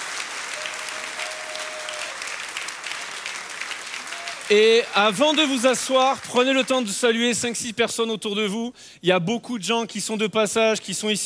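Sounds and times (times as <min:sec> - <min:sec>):
audience applause: 0:00.0 - 0:07.2
speech: 0:04.5 - 0:11.2.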